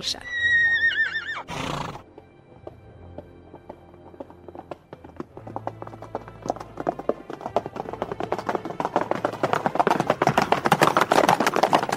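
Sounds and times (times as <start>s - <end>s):
horse neighing: 0.2s - 2.1s
horse hooves galloping: 0.7s - 11.9s.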